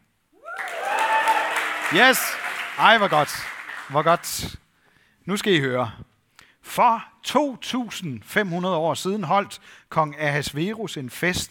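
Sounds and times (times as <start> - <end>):
crowd clapping: 0.4 - 4.5
speech: 1.9 - 4.6, 5.3 - 11.5.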